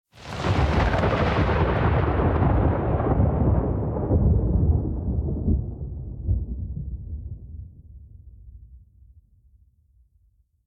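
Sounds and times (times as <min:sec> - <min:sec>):
lightning strike: 0:00.2 - 0:06.2.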